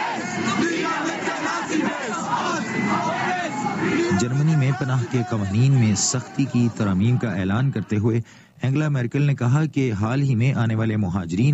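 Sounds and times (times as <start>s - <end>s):
anti-nationalist protesters in Cologne chanting slogans against Nazism: 0.0s - 7.9s
speech: 4.2s - 11.5s.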